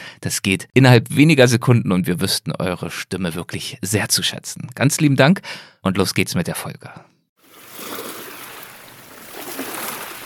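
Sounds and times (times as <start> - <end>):
speech: 0.2 - 7.1
lake waves breaking on the shore: 7.4 - 10.2.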